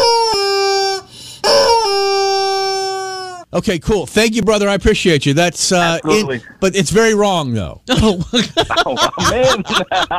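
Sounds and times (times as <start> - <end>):
rubber toy chicken squawking: 0.0 - 3.5
speech: 3.6 - 10.1
laughter: 8.0 - 10.1.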